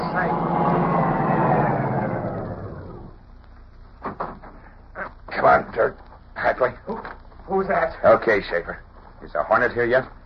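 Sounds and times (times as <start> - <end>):
car engine roaring: 0.0 - 3.3
speech: 5.8 - 6.0, 7.7 - 10.2.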